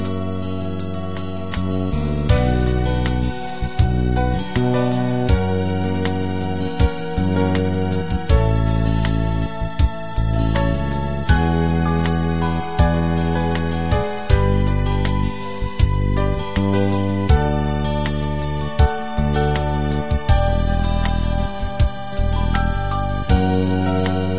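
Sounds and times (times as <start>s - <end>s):
guitar ballad: 0.0s - 24.3s.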